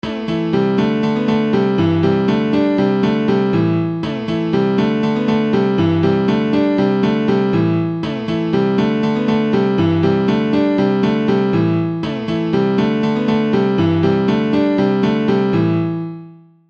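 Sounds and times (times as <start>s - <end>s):
piano: 0.0s - 16.6s.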